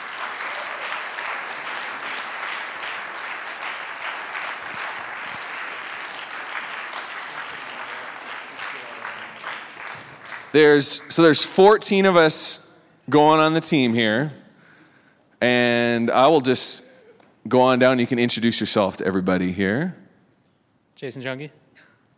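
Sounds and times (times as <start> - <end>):
crowd clapping: 0.0 - 11.6
speech: 10.5 - 14.4, 15.4 - 16.9, 17.5 - 20.0, 21.0 - 21.6.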